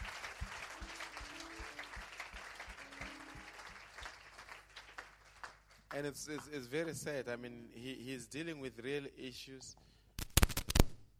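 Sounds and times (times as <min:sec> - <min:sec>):
convention audience clapping for a waiter: 0:00.0 - 0:06.8
speech: 0:06.0 - 0:09.8.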